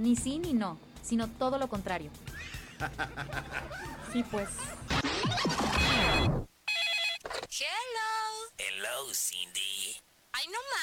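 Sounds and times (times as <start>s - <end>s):
speech: 0.0s - 4.8s, 9.0s - 10.8s
laughter: 2.3s - 5.8s
telephone ringing: 5.7s - 7.4s.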